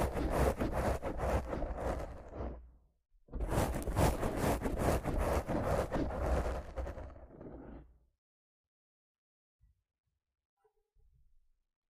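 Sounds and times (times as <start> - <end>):
rough scratching and brushing against a microphone: 0.0 - 2.7, 3.4 - 7.9.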